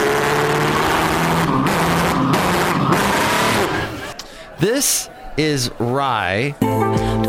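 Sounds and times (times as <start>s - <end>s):
person imitating a car driving away with a gritty engine rumble: 0.0s - 4.2s
speech: 4.6s - 7.1s.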